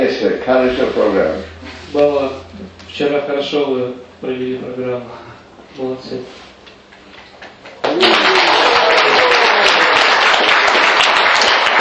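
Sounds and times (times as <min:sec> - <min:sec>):
speech: 0:00.1 - 0:06.4
group of people clapping: 0:07.1 - 0:11.7.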